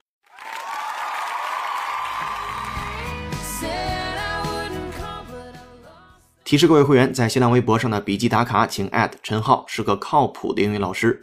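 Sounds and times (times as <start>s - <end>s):
applause: 0.2s - 3.3s
speech: 6.5s - 11.2s.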